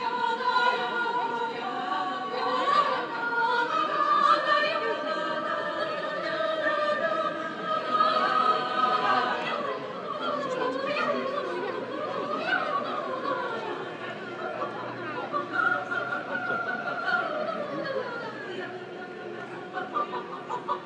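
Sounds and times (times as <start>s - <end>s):
choir performing at a party: 0.0s - 20.8s
laughter: 7.6s - 20.8s.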